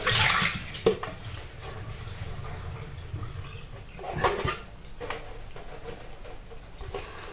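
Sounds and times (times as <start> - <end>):
water pouring for coffee: 0.0 - 6.9.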